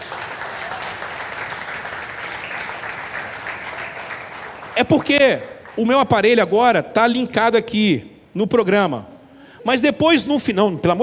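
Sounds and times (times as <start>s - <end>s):
applause: 0.0s - 6.3s
speech: 4.8s - 11.0s.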